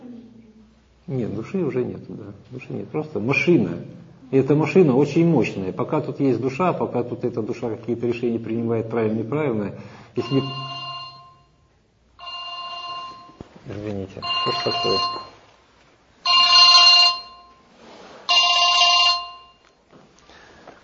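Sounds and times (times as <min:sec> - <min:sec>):
speech: 0:01.1 - 0:10.8, 0:13.8 - 0:15.3
telephone ringing: 0:10.2 - 0:13.5, 0:14.2 - 0:15.4, 0:16.2 - 0:17.7, 0:18.3 - 0:19.8.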